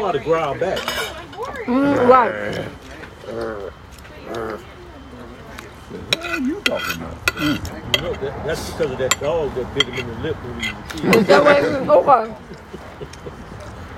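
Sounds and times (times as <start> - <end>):
speech: 0.0 - 4.7, 5.9 - 13.4
utensil clinking against dishes: 0.6 - 1.7, 6.0 - 11.8
laughter: 1.7 - 2.8, 10.8 - 13.9.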